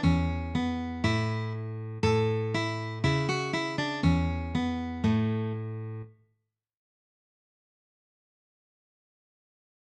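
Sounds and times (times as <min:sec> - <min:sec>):
guitar: 0:00.0 - 0:06.2.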